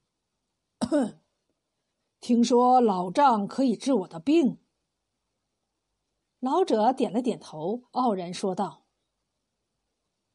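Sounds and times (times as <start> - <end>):
man coughing: 0.8 - 1.2
speech: 0.9 - 1.2, 2.2 - 4.6, 6.4 - 8.8.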